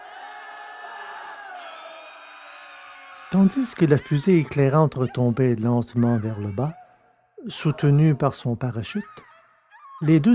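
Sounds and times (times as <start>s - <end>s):
crowd screaming and wailing in pain and terror in a cave: 0.0s - 4.6s
speech: 3.3s - 6.8s, 7.4s - 9.3s, 10.0s - 10.3s.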